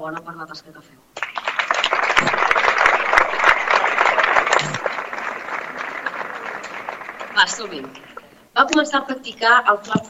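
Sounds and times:
speech: 0.0s - 1.4s, 7.4s - 10.0s
audience applause: 1.2s - 8.2s.

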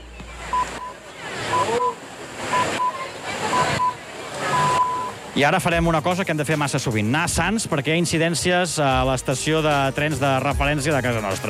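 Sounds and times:
radio hourly time signal pips at eight in the evening: 0.5s - 5.2s
speech: 5.4s - 11.4s.

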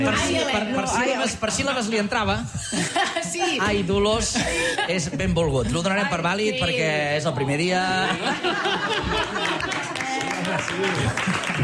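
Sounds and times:
speech: 0.0s - 9.7s, 10.5s - 11.6s
laughter: 0.4s - 6.1s, 7.7s - 11.6s
loud applause: 8.6s - 11.6s.

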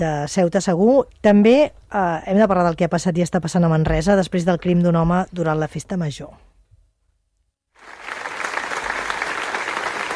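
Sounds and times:
speech: 0.0s - 6.5s
applause at a memorial gathering for a murder victim in Manresa: 7.8s - 10.1s.

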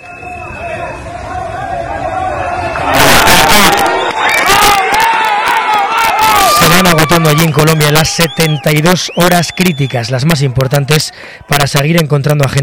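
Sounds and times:
murmur of voices in Cali, Colombia after a magnitude 7.4 earthquake: 0.0s - 6.6s
crowd cheering and yelling in Cali, Colombia after a magnitude 7.4 earthquake: 0.0s - 12.0s
speech: 7.2s - 12.6s.

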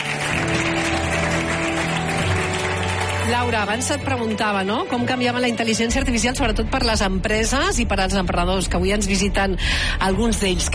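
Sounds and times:
audience applause: 0.0s - 4.0s
speech: 3.3s - 10.7s.

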